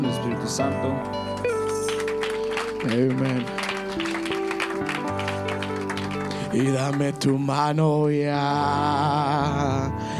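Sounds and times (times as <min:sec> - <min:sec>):
sustained held keyboard chords: 0:00.0 - 0:10.1
speech: 0:00.5 - 0:01.2, 0:02.8 - 0:03.6, 0:06.5 - 0:10.1
audience applause: 0:01.6 - 0:07.3.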